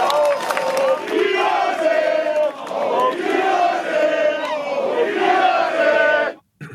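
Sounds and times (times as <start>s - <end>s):
football fans chanting against their own club's leadership: 0.0s - 6.4s.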